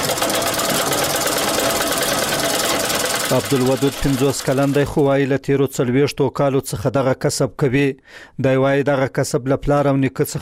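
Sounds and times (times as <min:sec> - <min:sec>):
sewing machine stitching sheepskin coats: 0:00.0 - 0:05.2
speech: 0:03.3 - 0:10.4.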